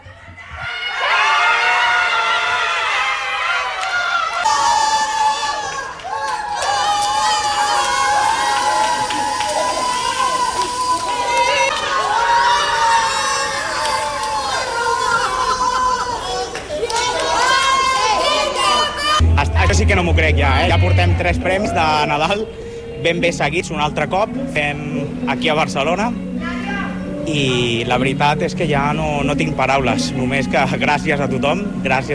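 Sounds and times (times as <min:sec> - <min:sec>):
crowd cheering at lottery prize win: 0:00.0 - 0:22.6
speech: 0:20.3 - 0:26.3, 0:27.3 - 0:32.1.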